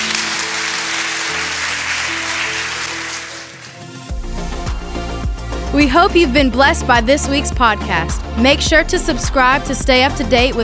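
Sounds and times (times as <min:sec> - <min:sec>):
audience clapping hands: 0:00.0 - 0:04.1
speech: 0:05.8 - 0:10.6.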